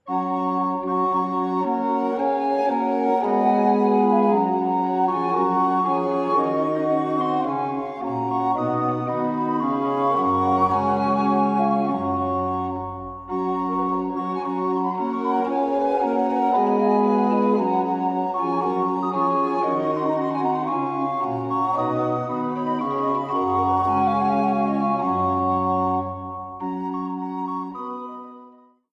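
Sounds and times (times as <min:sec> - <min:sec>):
flute sonata: 0:00.0 - 0:28.9.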